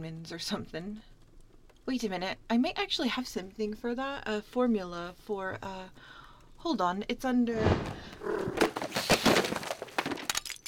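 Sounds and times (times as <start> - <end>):
speech: 0.0 - 1.1, 1.8 - 8.6
pile of books collapsing: 7.6 - 10.6.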